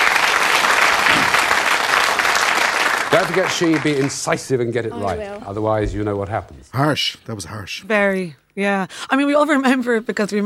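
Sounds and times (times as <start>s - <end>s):
studio audience applause at a quiz show: 0.0s - 5.2s
speech: 3.1s - 10.4s.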